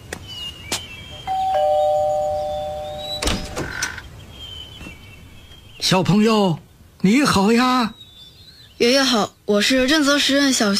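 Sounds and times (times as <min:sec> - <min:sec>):
doorbell ringing: 0:01.2 - 0:03.6
speech: 0:05.8 - 0:08.0, 0:08.8 - 0:10.7.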